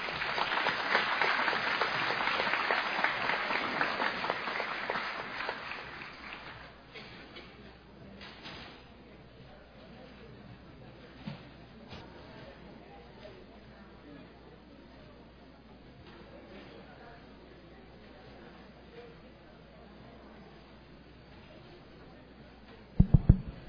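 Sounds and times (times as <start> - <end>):
audience applause: 0.0 - 6.7.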